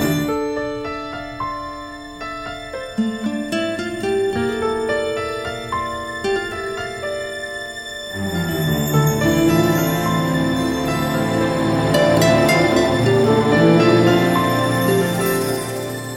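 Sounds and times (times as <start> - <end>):
sad piano loop: 0.0 - 16.1.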